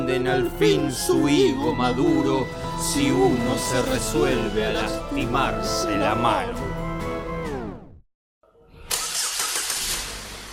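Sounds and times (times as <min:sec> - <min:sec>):
speech: 0:00.1 - 0:06.8
car engine cranking, starting and revving: 0:08.8 - 0:10.5.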